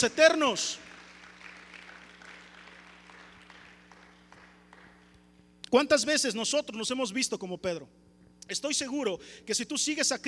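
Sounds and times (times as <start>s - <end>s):
speech: 0.0s - 0.9s, 5.7s - 10.2s
audience applause: 0.8s - 5.2s.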